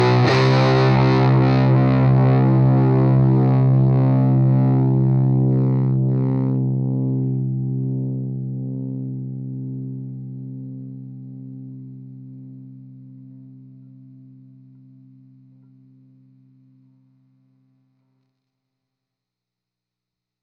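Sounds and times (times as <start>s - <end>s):
heavy electric guitar: 0.0s - 9.4s.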